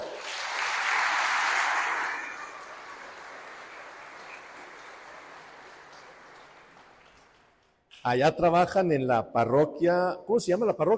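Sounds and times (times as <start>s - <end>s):
crowd applause: 0.0s - 7.7s
speech: 8.0s - 10.9s.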